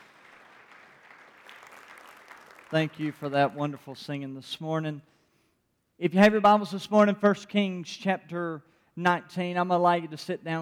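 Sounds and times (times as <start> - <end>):
choir hand clapping: 0.0 - 3.6
speech: 2.7 - 5.1, 6.0 - 10.6.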